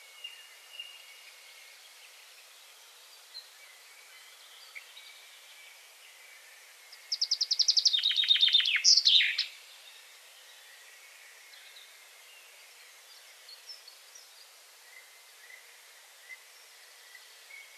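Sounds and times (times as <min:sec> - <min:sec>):
common chaffinch song: 0:00.0 - 0:17.7.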